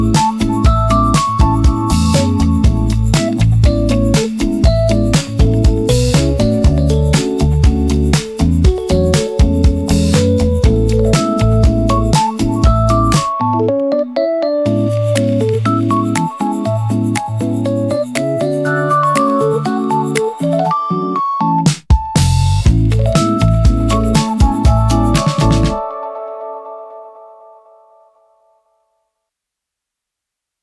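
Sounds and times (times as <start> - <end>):
lo-fi bossa nova music: 0.0 - 27.0.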